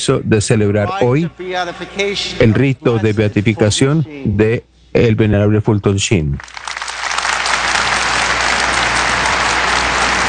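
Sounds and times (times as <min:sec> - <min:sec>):
speech: 0:00.0 - 0:06.6
crowd applause: 0:06.4 - 0:10.2.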